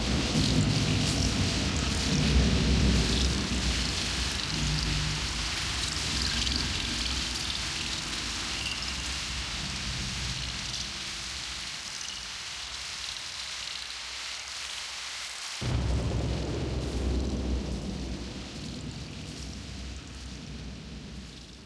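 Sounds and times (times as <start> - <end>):
thunder: 0.0 - 11.0, 15.6 - 21.6.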